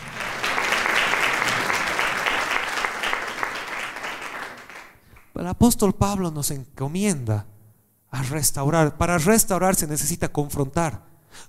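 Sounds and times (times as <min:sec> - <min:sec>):
audience applause: 0:00.0 - 0:05.3
speech: 0:05.5 - 0:11.4.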